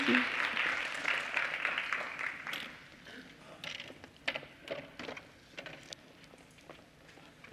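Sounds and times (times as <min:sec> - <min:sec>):
church audience clapping: 0:00.0 - 0:03.0.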